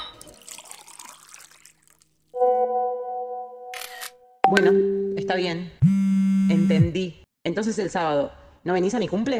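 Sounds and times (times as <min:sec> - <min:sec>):
water being poured into a bowl: 0:00.2 - 0:02.3
speech: 0:04.5 - 0:05.8, 0:06.5 - 0:09.3.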